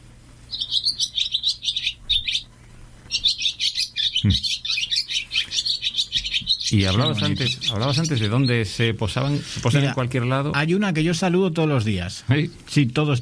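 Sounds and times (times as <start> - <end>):
barn swallows singing: 0.5 - 2.5, 3.1 - 10.5
speech: 4.2 - 4.5, 6.8 - 13.2.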